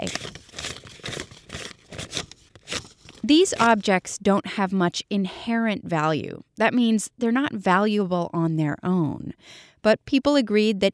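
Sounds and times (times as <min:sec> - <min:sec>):
paper money bills crinkling and rustling: 0:00.0 - 0:04.1
speech: 0:03.2 - 0:10.9.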